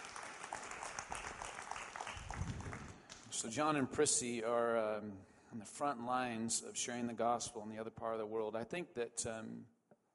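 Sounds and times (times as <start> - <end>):
audience applause: 0.0 - 3.2
speech: 3.4 - 9.8.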